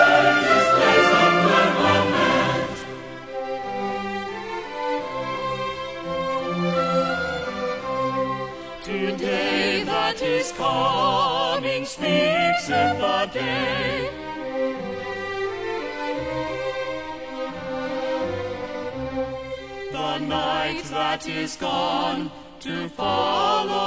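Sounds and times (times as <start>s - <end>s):
choir singing: 0.0s - 5.6s, 6.4s - 14.2s, 19.8s - 23.8s
orchestra playing: 0.0s - 9.9s, 12.0s - 20.5s.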